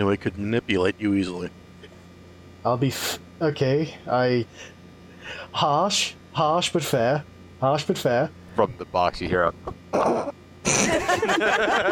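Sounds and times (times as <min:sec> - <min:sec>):
speech: 0:00.0 - 0:01.6, 0:02.6 - 0:11.9
voice imitating a sneeze: 0:09.9 - 0:10.9
laughter: 0:10.0 - 0:11.9.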